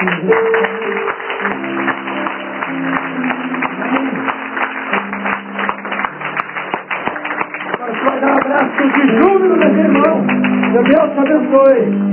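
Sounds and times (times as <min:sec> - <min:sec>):
audience applauding loudly: 0:00.0 - 0:12.0.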